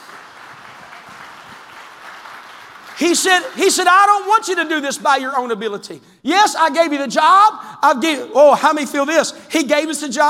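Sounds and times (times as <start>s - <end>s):
audience clapping hands: 0.0s - 4.8s
speech: 3.0s - 10.2s.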